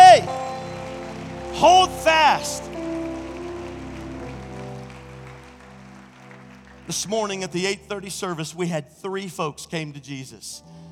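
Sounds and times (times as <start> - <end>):
audience shouting: 0.0 - 0.3, 1.5 - 2.7
audience clapping: 0.0 - 7.8
speech: 1.6 - 2.7, 6.9 - 10.8.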